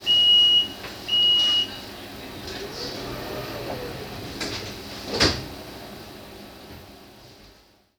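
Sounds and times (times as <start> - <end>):
train door closing: 0.8 - 6.0.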